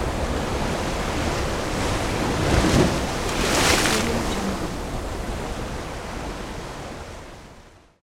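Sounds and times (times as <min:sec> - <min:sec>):
waves breaking and splashing on cement pier: 0:00.0 - 0:05.8.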